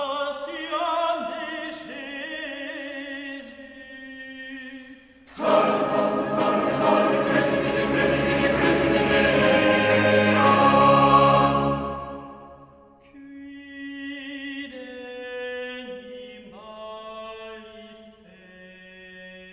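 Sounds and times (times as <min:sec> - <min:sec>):
choir singing: 0:05.3 - 0:13.0.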